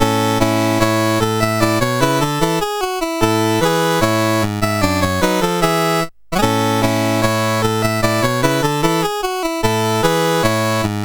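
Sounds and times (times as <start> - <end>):
SID CSG8580R5 chiptune menu music: 0.0 - 11.0.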